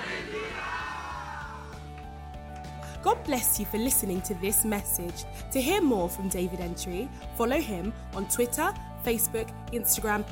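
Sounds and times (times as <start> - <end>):
audience shouting hallelujah: 0.0 - 1.8
speech: 3.0 - 10.3.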